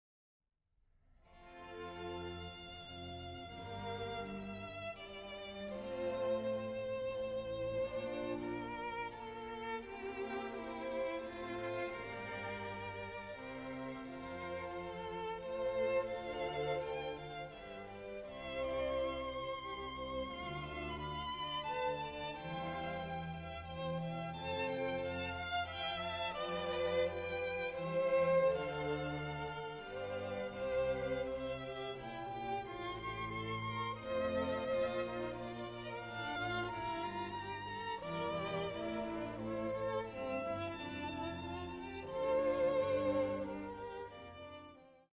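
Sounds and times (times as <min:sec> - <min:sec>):
violin concerto, slow movement: 0:01.3 - 0:45.1.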